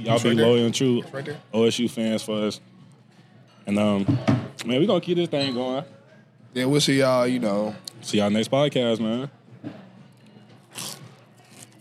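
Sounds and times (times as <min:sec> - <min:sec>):
speech: 0:00.0 - 0:02.7, 0:03.7 - 0:09.8
crunching food into the microphone: 0:10.6 - 0:11.8.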